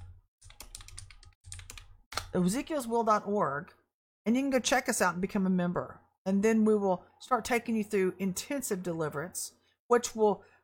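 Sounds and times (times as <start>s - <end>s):
typing on a computer keyboard: 0.0s - 2.3s
speech: 2.3s - 10.5s.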